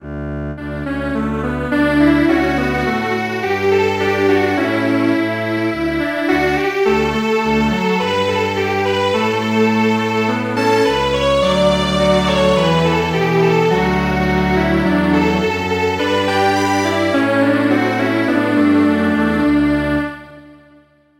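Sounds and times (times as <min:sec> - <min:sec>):
string quartet playing: 0:00.9 - 0:20.7.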